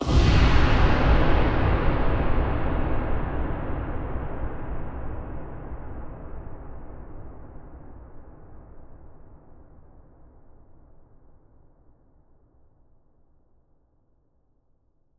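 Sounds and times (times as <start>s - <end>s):
huge long reverb tail: 0.0s - 7.5s.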